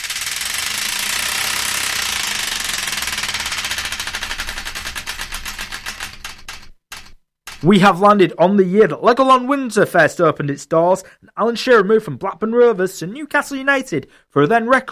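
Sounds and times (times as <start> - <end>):
prize wheel spinning and clicking: 0.0 - 7.9
speech: 7.6 - 14.8.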